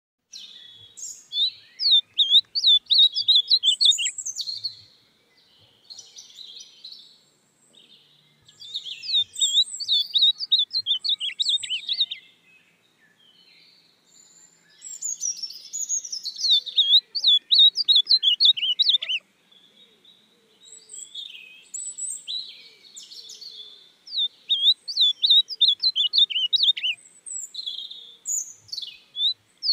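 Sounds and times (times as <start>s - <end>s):
ultramarine grosbeak Cyanoloxia brissonii looping whistles: 1.8s - 4.2s, 9.1s - 12.2s, 16.5s - 19.2s, 24.2s - 27.0s.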